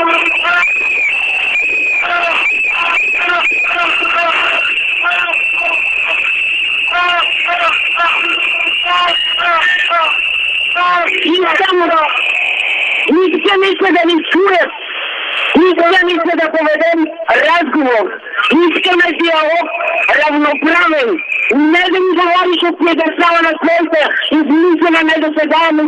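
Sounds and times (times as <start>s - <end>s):
crowd blowing whistles: 0.0s - 13.2s, 18.4s - 22.6s
speech: 13.7s - 14.8s, 15.6s - 25.8s.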